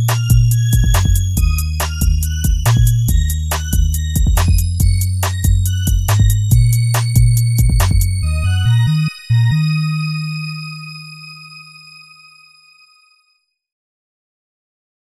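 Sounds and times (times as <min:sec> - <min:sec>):
charge beat: 0:00.0 - 0:10.6.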